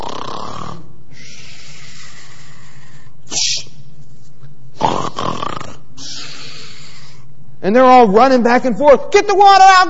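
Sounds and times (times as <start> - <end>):
person imitating snoring: 0.0 - 3.0, 4.8 - 7.1
speech: 7.7 - 9.8.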